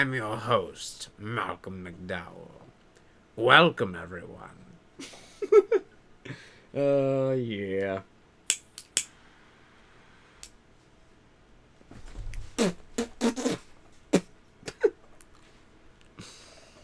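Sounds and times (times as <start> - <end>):
speech: 0.0 - 2.7, 3.4 - 8.1, 12.6 - 12.8
person spitting out ash while smoking: 12.4 - 14.8.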